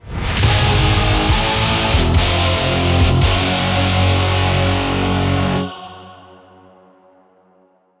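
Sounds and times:
instrumental music: 0.5s - 5.7s.

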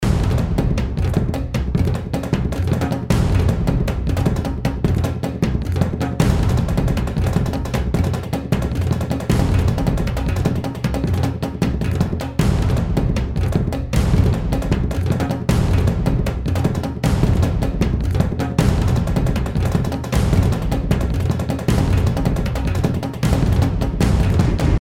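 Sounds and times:
action drums: 0.0s - 24.7s.

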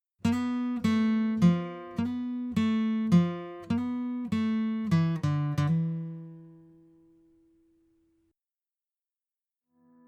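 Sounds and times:
guitar: 0.2s - 8.0s.

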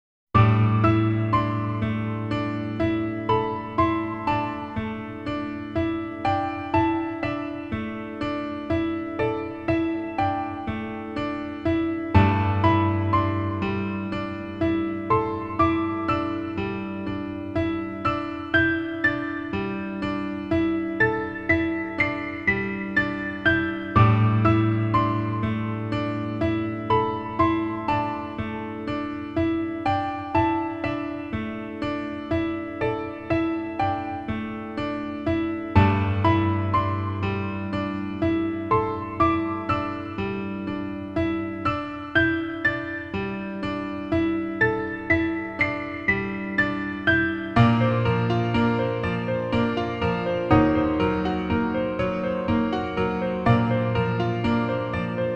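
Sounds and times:
piano: 0.3s - 55.3s.

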